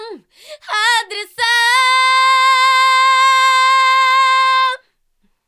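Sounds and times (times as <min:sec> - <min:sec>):
a cappella scream: 0:00.7 - 0:04.9.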